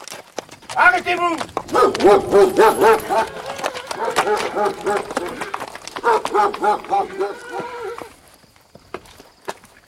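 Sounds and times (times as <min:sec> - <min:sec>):
scuffling footsteps: 0:00.8 - 0:09.8
speech: 0:01.1 - 0:03.4, 0:04.2 - 0:05.1, 0:06.1 - 0:07.7
dog barking: 0:01.7 - 0:05.5, 0:06.0 - 0:07.9.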